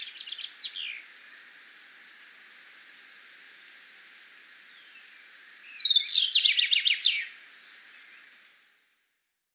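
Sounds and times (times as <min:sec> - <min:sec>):
Common chaffinch singing cascading rattle: 0:00.0 - 0:01.1, 0:03.6 - 0:08.4.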